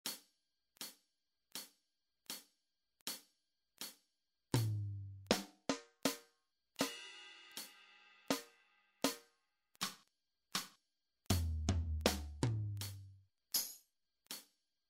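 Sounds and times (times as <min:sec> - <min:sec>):
rhythmic exercise: 0:00.0 - 0:07.7, 0:08.3 - 0:13.7.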